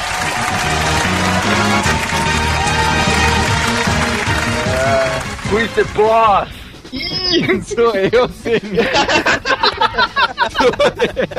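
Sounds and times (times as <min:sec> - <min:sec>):
crowd applause: 0:00.0 - 0:06.4
speech: 0:05.5 - 0:11.3
laughter: 0:07.0 - 0:11.3.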